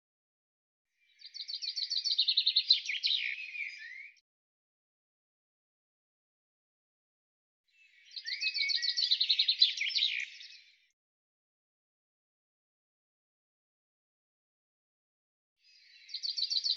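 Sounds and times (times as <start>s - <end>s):
bird song: 0.9s - 4.2s, 7.6s - 11.0s, 15.6s - 16.7s.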